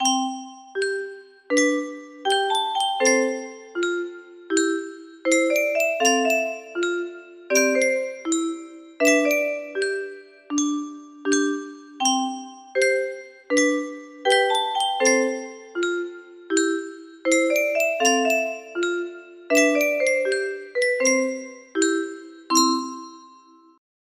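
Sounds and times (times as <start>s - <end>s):
music box melody: 0.0s - 23.8s.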